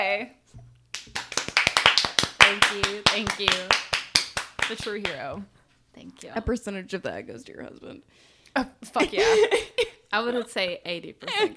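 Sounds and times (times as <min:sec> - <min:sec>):
small group clapping: 0:00.9 - 0:05.4
speech: 0:02.7 - 0:03.8, 0:04.7 - 0:11.5.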